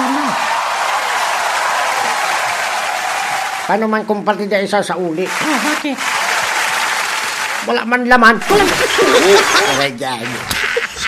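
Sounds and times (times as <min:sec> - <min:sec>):
gathered group applauding: 0:00.0 - 0:04.0, 0:05.2 - 0:09.8
speech: 0:03.7 - 0:06.2, 0:07.6 - 0:10.6
laughter: 0:08.4 - 0:11.0.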